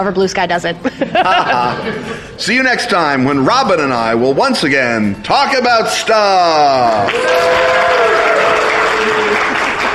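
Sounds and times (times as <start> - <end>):
speech: 0.0 - 8.1
laughter: 0.8 - 2.5
applause: 6.9 - 9.9.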